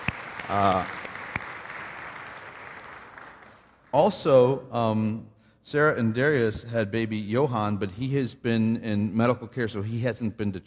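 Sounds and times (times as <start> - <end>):
audience applause: 0.0 - 3.9
speech: 0.5 - 1.0, 3.9 - 10.6.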